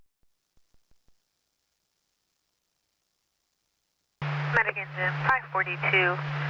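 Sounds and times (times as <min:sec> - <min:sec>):
radio static: 0:04.2 - 0:06.4
speech: 0:05.6 - 0:06.4.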